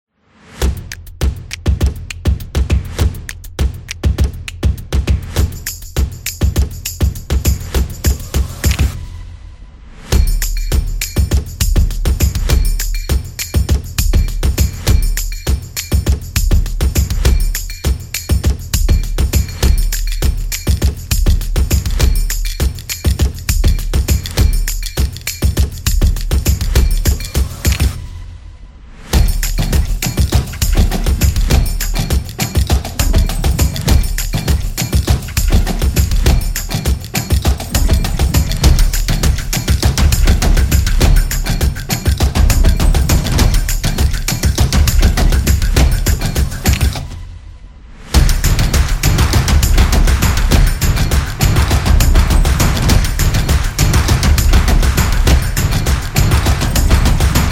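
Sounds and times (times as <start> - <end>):
drums: 0.4 - 28.3, 29.1 - 47.2, 48.0 - 57.5.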